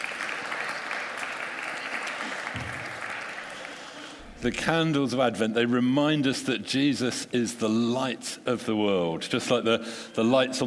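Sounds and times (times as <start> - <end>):
audience applause for child helpers: 0.0 - 4.2
speech: 4.4 - 10.6.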